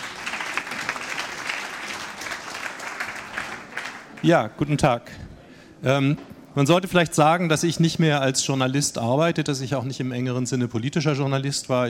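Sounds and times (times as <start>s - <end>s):
audience applause: 0.0s - 4.3s
speech: 4.2s - 11.8s.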